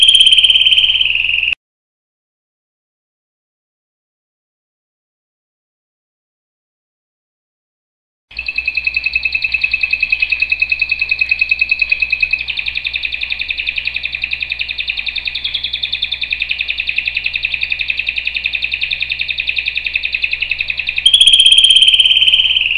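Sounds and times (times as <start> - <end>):
canary singing trills: 0.0 - 1.6, 8.3 - 22.7.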